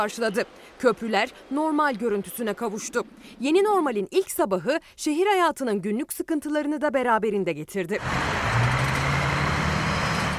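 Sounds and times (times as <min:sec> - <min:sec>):
morning traffic in İzmir: 0:00.0 - 0:03.4, 0:08.0 - 0:10.3
speech: 0:00.0 - 0:08.4.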